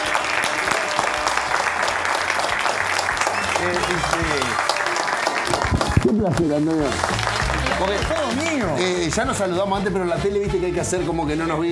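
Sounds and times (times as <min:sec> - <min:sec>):
audience applause: 0:00.0 - 0:09.3
speech: 0:03.6 - 0:04.7, 0:05.5 - 0:11.7.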